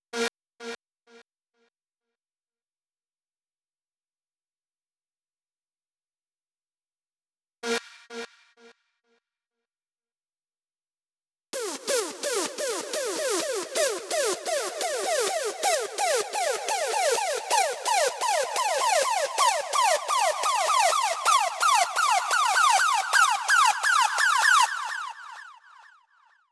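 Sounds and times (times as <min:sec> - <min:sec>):
drum loop: 0:11.6 - 0:24.3
tonal synth in A-sharp: 0:11.6 - 0:25.7.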